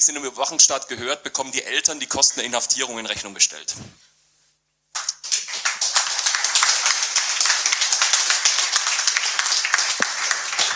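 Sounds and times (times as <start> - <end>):
speech: 0.0 - 4.1
audience applause: 5.0 - 10.7.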